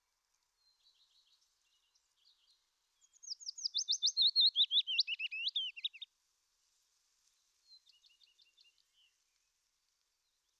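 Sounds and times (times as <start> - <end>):
Willow warbler singing a descending cascade of whistled notes: 3.2 - 6.0.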